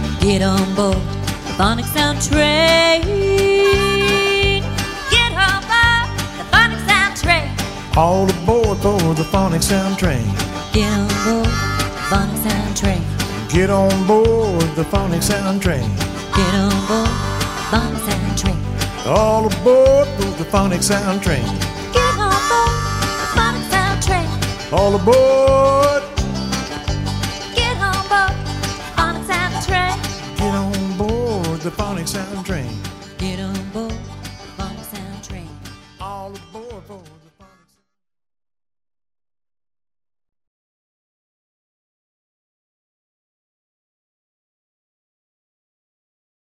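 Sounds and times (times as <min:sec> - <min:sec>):
children's song: 0:00.2 - 0:26.2, 0:27.4 - 0:37.7.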